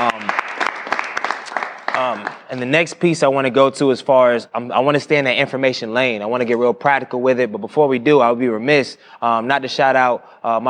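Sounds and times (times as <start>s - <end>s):
live audience applause: 0.0s - 2.7s
speech: 2.2s - 10.6s.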